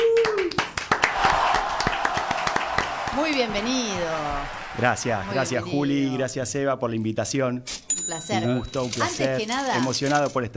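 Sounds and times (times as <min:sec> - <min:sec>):
audience clapping for arriving guest: 0:00.0 - 0:05.8
speech: 0:03.3 - 0:10.5.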